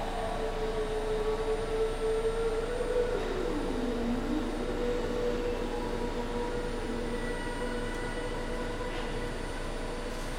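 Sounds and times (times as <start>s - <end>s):
subway drone music: 0.1s - 10.2s.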